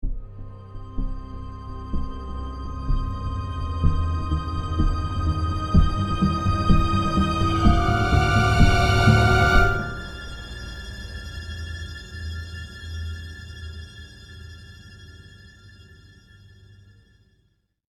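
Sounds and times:
suspense music: 0.0 - 13.2.

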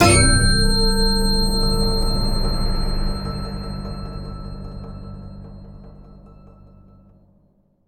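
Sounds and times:
shock sting: 0.0 - 5.8.

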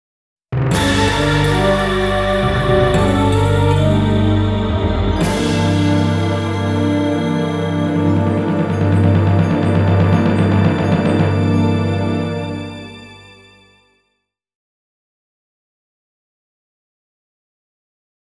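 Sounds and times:
jingle: 0.7 - 13.9.

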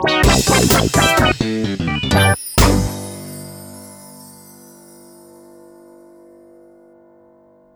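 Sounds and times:
ending fanfare: 0.0 - 4.3.

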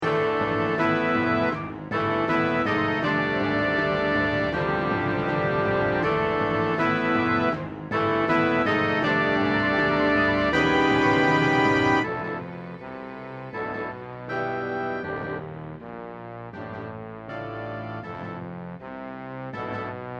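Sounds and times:
battle music: 0.0 - 15.4.

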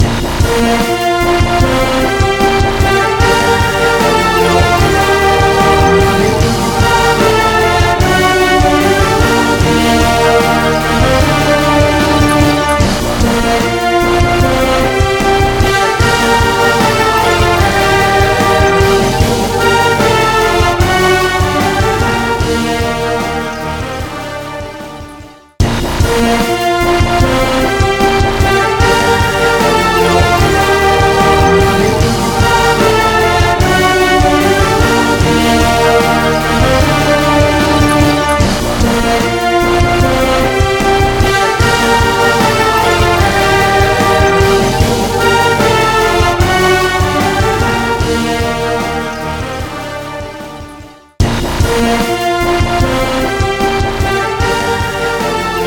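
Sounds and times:
full jingle: 0.0 - 55.6.

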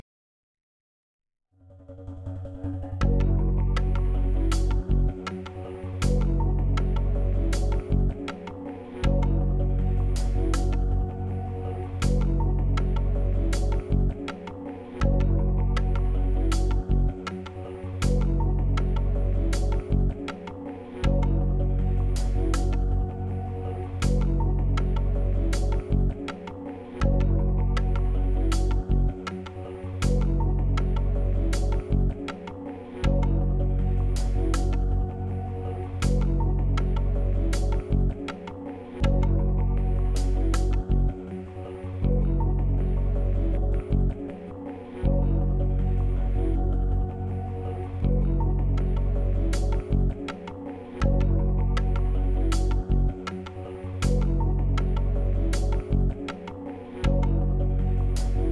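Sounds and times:
minimal music loop: 3.0 - 58.5.

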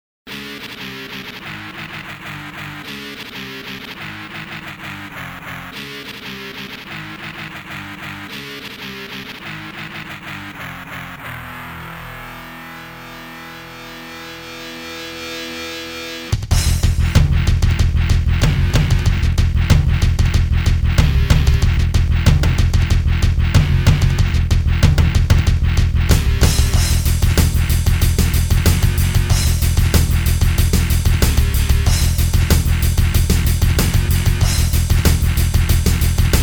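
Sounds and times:
laughter: 0.4 - 12.6
samba music: 16.4 - 36.4.

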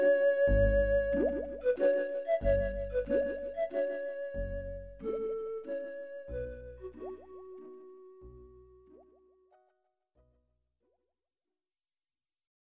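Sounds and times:
calm ambient music: 0.0 - 9.8.

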